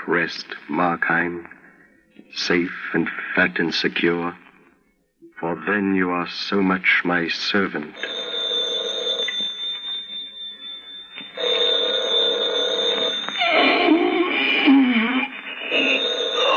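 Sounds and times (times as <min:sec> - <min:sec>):
speech: 0:00.1 - 0:01.6, 0:02.2 - 0:04.4, 0:05.4 - 0:08.2
telephone ringing: 0:07.7 - 0:16.5.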